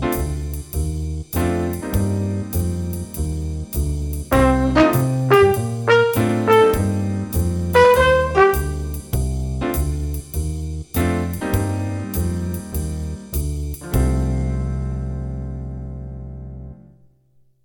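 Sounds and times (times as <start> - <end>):
jazz improvisation in C minor: 0.0 - 16.9
trumpet: 4.3 - 9.2.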